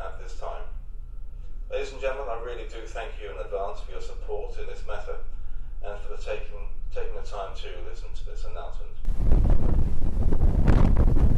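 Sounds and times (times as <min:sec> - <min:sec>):
speech: 0:01.8 - 0:10.0
wind buffeting a ship at sea: 0:09.0 - 0:11.3.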